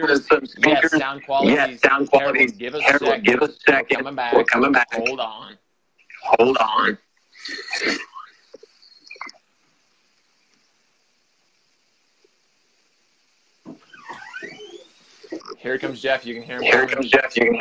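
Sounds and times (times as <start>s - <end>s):
speech: 0.0s - 5.6s, 6.3s - 8.1s, 15.6s - 17.5s
creaky door opening in haunted mansion: 13.7s - 15.6s.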